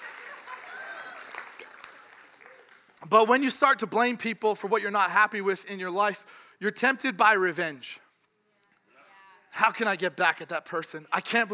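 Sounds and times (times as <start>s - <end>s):
audience applauding: 0.0s - 3.2s
speech: 3.0s - 8.0s, 9.6s - 11.5s.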